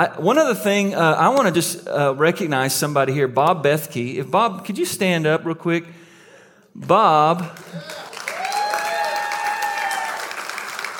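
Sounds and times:
speech: 0.0 - 6.0, 6.8 - 8.0
audience applause: 7.6 - 10.9
crowd cheering: 7.6 - 10.9.

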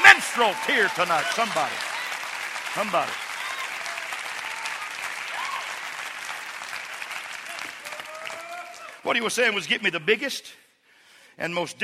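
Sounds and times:
audience clapping hands: 0.0 - 9.3
speech: 0.4 - 1.9, 2.8 - 3.2, 9.1 - 10.6, 11.4 - 11.8.

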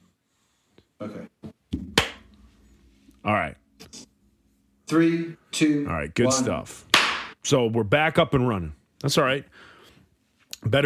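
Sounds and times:
speech: 1.0 - 1.4, 3.2 - 3.6, 4.9 - 9.7, 10.6 - 10.8
hand clap to sync recordings: 2.0 - 2.3, 6.9 - 7.4.

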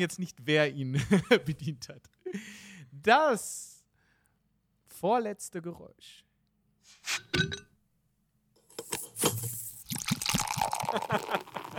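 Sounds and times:
speech: 0.0 - 3.7, 5.0 - 6.2, 7.0 - 7.7, 10.9 - 11.7
beer pouring into a glass: 9.7 - 11.7
laughter: 10.9 - 11.7.

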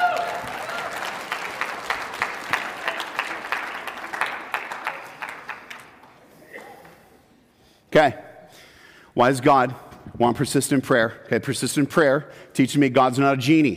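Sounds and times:
church audience applauding a pastor: 0.0 - 6.3
speech: 8.0 - 8.2, 9.2 - 13.7.

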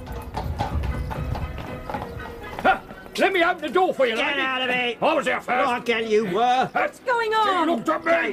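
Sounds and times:
horse-drawn carriage hooves clip-clopping: 0.0 - 8.3
speech: 3.2 - 8.3.

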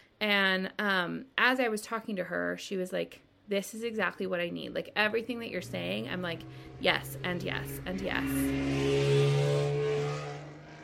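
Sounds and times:
speech: 0.2 - 9.8
traffic passing on a Washington DC street: 4.6 - 10.8.

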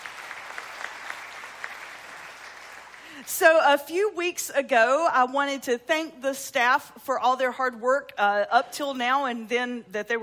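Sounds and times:
audience clapping: 0.0 - 3.3
speech: 3.2 - 10.2.

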